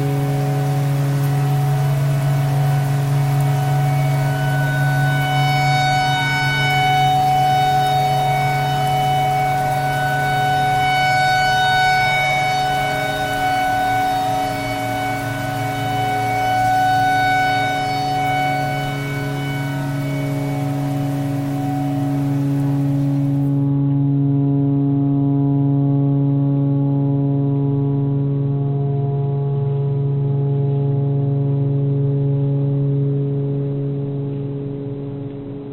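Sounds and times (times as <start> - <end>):
tornado siren: 0.0 - 35.7.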